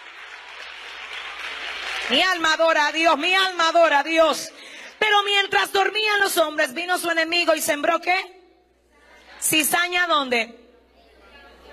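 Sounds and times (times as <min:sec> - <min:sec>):
audience applause: 0:00.0 - 0:02.4
speech: 0:02.1 - 0:08.4, 0:09.4 - 0:10.6.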